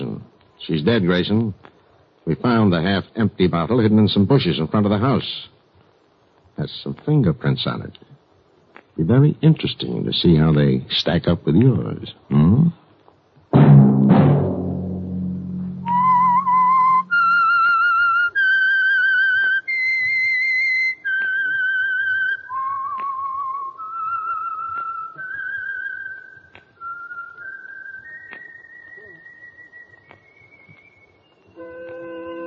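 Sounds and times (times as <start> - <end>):
speech: 0.6 - 5.6, 6.6 - 8.1, 9.0 - 12.8
deep resonant struck tones: 13.5 - 17.5
whistled signal tune: 15.5 - 32.4.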